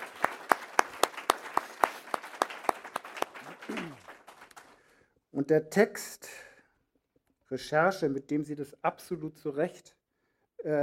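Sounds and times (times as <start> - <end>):
audience applause: 0.0 - 4.9
speech: 5.4 - 6.4, 7.5 - 10.0, 10.6 - 10.8.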